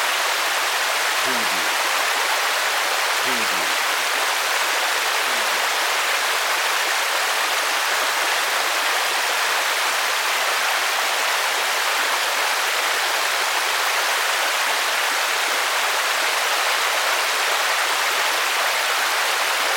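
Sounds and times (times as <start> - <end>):
heavy rain on a lake: 0.0 - 19.7.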